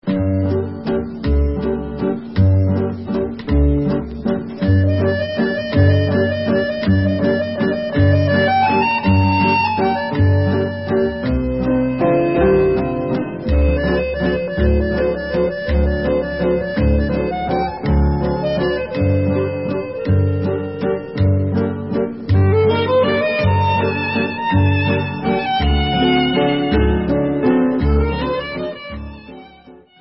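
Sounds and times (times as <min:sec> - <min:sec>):
waltz music: 0:00.0 - 0:29.9.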